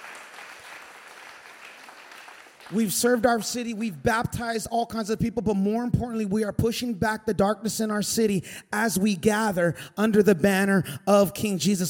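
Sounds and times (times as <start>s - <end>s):
crowd applause: 0.0s - 3.0s
speech: 2.7s - 11.8s.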